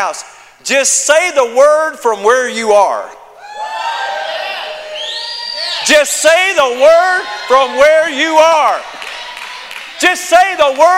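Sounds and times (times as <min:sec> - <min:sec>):
speech: 0:00.0 - 0:03.9, 0:05.8 - 0:09.0, 0:10.0 - 0:10.9
audience shouting: 0:03.4 - 0:10.9.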